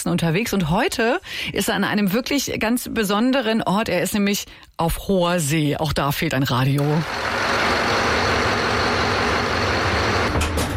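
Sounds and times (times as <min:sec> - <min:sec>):
speech: 0:00.0 - 0:07.6
ferry bow thruster motor running: 0:07.0 - 0:10.6.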